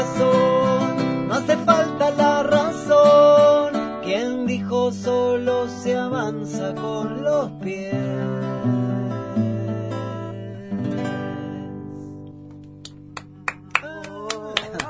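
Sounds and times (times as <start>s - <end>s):
person singing: 0.0s - 12.1s, 13.7s - 14.8s
guitar strumming: 0.0s - 14.5s
audience clapping: 12.5s - 14.8s.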